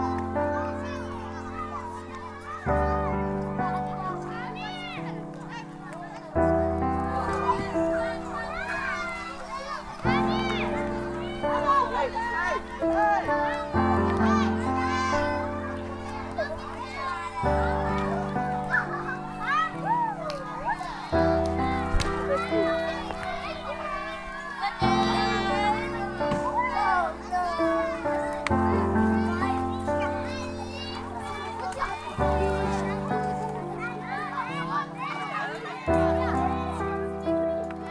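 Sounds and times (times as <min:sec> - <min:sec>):
music: 0:00.0 - 0:37.9
refugee children's voices: 0:00.0 - 0:37.9.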